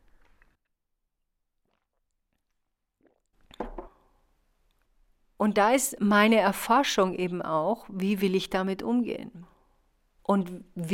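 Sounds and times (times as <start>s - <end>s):
quick sip of tea: 1.6s - 3.6s
speech: 5.4s - 9.5s, 10.3s - 10.9s.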